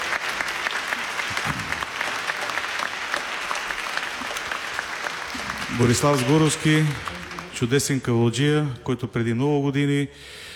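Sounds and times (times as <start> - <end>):
audience at a folk concert applauding a composer: 0.0 - 8.4
speech: 5.8 - 10.4.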